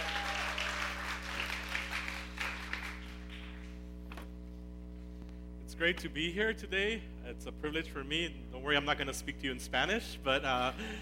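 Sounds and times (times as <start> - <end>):
audience applause welcoming a guest pastor: 0.0 - 3.7
low constant hum: 0.0 - 11.0
speech: 5.8 - 11.0.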